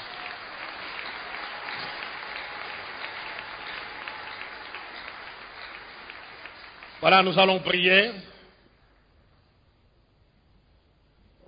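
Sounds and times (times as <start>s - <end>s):
church congregation applauding during a worship service: 0.0s - 8.3s
speech: 7.0s - 8.3s.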